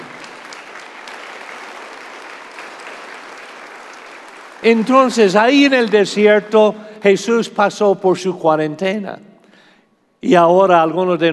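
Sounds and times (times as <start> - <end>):
audience applause: 0.0 - 6.4
speech: 4.6 - 9.3, 10.2 - 11.3.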